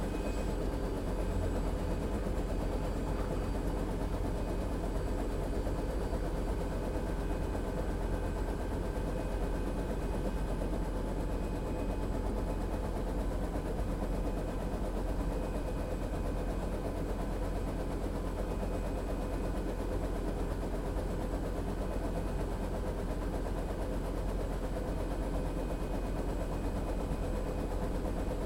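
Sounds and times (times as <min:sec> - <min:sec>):
Bell UH-1 Iroquois helicopter idling heard from the interior: 0:00.0 - 0:28.4.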